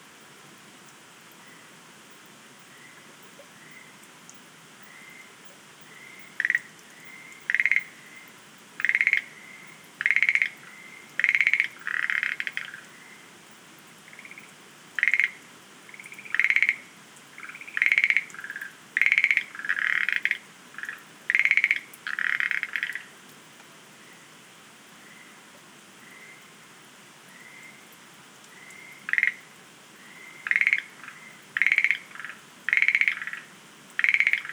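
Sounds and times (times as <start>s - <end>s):
Schlegel's green tree frogs clicking rattles: 5.9s - 13.2s, 14.1s - 23.2s, 28.5s - 34.5s.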